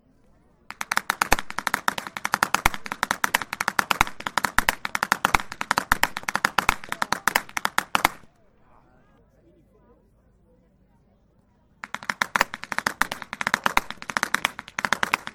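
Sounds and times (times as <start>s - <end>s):
youth whip cracking: 0.7s - 8.3s, 11.8s - 15.3s.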